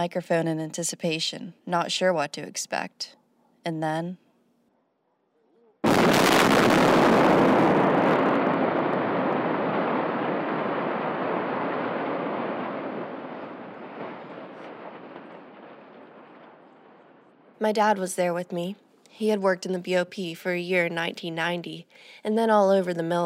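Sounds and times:
speech: 0.0 - 4.2, 17.6 - 23.2
building demolition implosion collapsing: 5.8 - 17.6.

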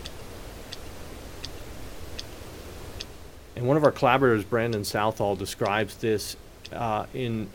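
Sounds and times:
sperm whale clicks: 0.0 - 2.4, 4.6 - 5.8
low rumbling hiss: 0.0 - 7.5
speech: 3.6 - 7.5.

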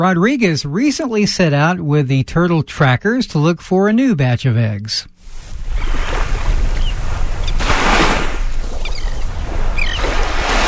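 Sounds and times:
speech: 0.0 - 6.1
low wind rumble: 5.2 - 10.6
waves washing ashore on a beach: 5.2 - 10.6
faint bird chirps: 5.8 - 7.6, 8.8 - 10.1.

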